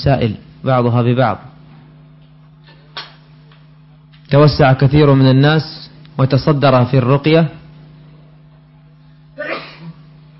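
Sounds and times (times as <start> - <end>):
speech: 0.0 - 1.5, 4.3 - 7.6
sneeze: 9.4 - 10.1.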